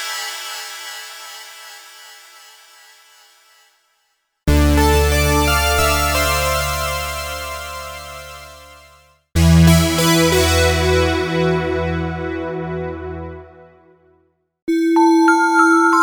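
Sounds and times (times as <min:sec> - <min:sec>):
super synthesizer: 0:04.5 - 0:13.8, 0:14.7 - 0:16.0.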